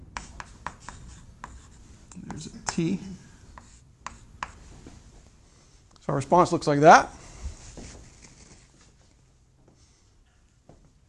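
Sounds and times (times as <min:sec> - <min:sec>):
writing on a board: 0:00.0 - 0:04.7
speech: 0:02.4 - 0:03.2, 0:06.1 - 0:07.2.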